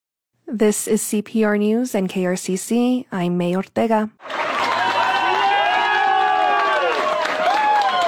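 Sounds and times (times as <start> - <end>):
speech: 0.5 - 4.4
applause and ovation: 4.2 - 8.0.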